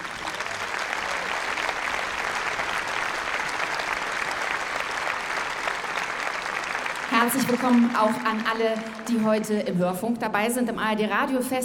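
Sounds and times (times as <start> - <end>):
audience applause: 0.0 - 9.5
speech: 7.2 - 11.6.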